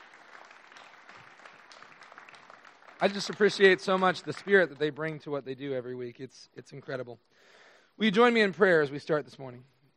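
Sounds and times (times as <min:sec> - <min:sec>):
church congregation applauding the worship band: 0:00.0 - 0:05.2
speech: 0:03.0 - 0:09.8.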